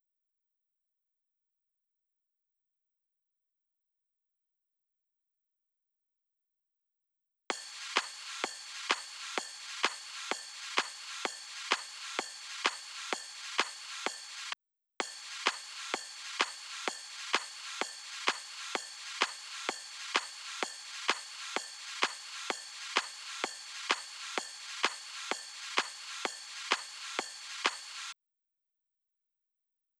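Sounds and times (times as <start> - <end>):
drum loop at 128 BPM: 7.5 - 28.2.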